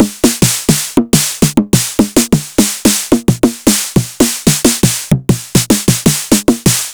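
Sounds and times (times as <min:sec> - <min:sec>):
Roland TR-909 snare drum: 0:00.0 - 0:06.9.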